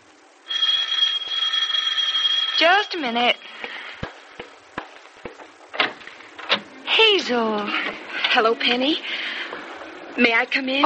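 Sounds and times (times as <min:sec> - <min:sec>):
doorbell ringing: 0:00.5 - 0:03.4
speech: 0:02.6 - 0:03.7, 0:07.2 - 0:09.3, 0:10.2 - 0:10.8.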